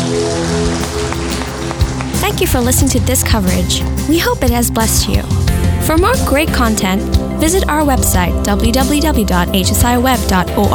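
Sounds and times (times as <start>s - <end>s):
audience applause: 0.0s - 2.6s
speech: 2.4s - 10.7s.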